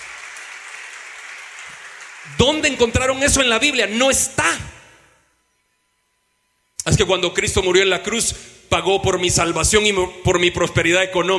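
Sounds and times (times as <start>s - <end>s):
audience applause: 0.0s - 2.8s
speech: 2.2s - 4.7s, 7.0s - 11.3s.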